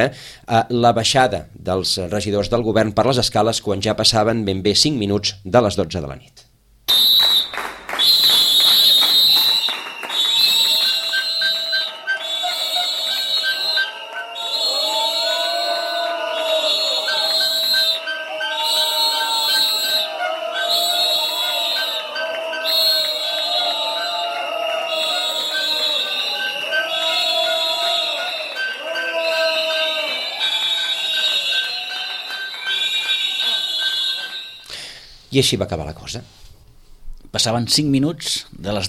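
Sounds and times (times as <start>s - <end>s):
speech: 0.0s - 7.2s, 35.4s - 36.4s, 37.3s - 38.8s
protesters applauding: 6.9s - 34.8s
protesters' whistles blowing: 6.9s - 35.2s.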